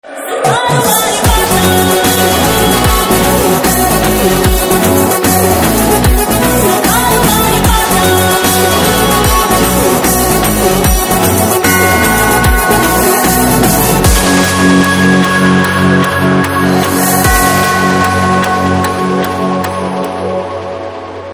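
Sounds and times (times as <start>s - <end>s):
background music: 0.0s - 21.3s.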